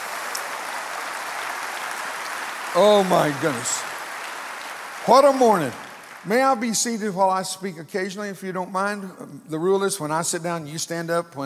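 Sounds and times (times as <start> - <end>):
church congregation applauding: 0.0 - 7.6
speech: 2.8 - 4.0, 5.0 - 11.4.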